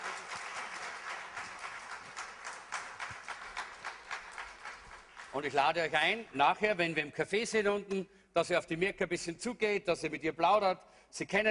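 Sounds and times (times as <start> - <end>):
audience applauding a welcome: 0.0 - 6.2
speech: 5.3 - 11.4.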